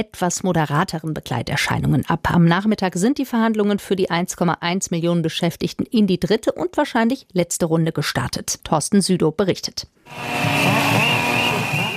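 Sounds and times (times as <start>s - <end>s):
speech: 0.0s - 11.2s
chainsaw noise at a protest in Potsdam: 10.1s - 11.9s
protest whistles in Potsdam: 10.1s - 11.9s.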